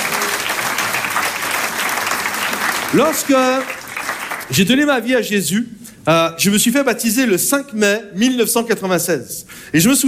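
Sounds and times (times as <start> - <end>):
audience applauding loudly: 0.0 - 4.8
speech: 2.9 - 3.8, 4.5 - 10.0.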